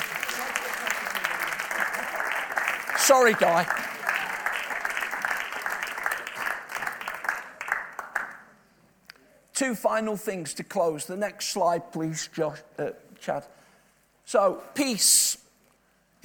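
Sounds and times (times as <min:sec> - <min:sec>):
audience clapping: 0:00.0 - 0:08.6
speech: 0:03.1 - 0:03.9, 0:09.6 - 0:13.6, 0:14.3 - 0:15.4.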